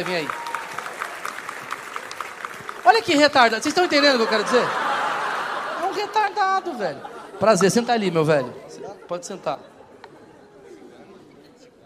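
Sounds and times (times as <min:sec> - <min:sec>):
speech: 0:00.0 - 0:00.4, 0:02.9 - 0:04.9, 0:06.0 - 0:09.7
audience applause: 0:00.0 - 0:06.9
laughter: 0:03.7 - 0:11.5.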